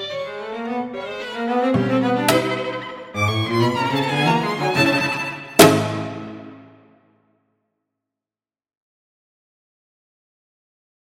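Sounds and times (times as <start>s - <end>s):
microtonal string quartet playing andantino giocoso: 0.0s - 6.8s.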